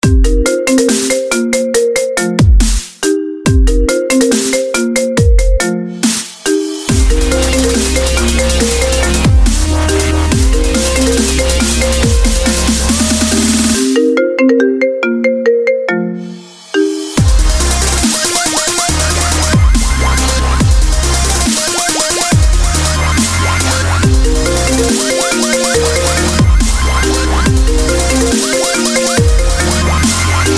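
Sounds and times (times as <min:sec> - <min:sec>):
ringtone remix: 0:00.0 - 0:30.5.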